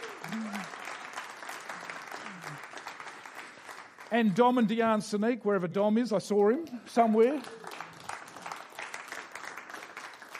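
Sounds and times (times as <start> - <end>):
audience applause: 0.0 - 4.1, 7.0 - 10.3
speech: 4.1 - 7.7.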